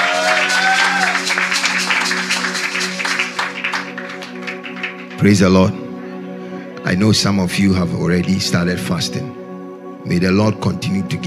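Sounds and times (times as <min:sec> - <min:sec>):
audience clapping hands: 0:00.0 - 0:05.4
speech: 0:05.2 - 0:05.8, 0:06.8 - 0:09.4, 0:10.0 - 0:11.2.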